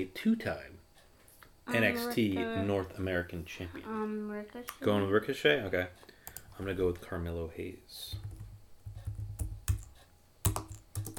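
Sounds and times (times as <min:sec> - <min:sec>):
speech: 0:00.0 - 0:00.8, 0:01.7 - 0:08.3
typing on a computer keyboard with a broken O key: 0:06.2 - 0:06.7, 0:08.1 - 0:11.1.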